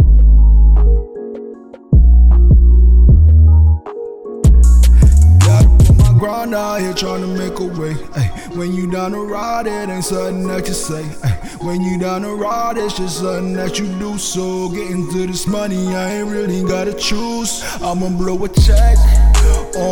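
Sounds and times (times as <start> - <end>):
instrumental music: 0.0 - 9.1, 13.4 - 19.8.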